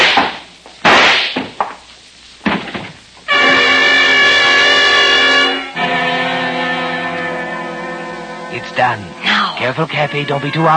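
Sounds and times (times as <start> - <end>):
gunshots: 0.0 - 1.5
loud sustained brassy chord-like tone: 3.3 - 10.7
speech: 8.8 - 10.7.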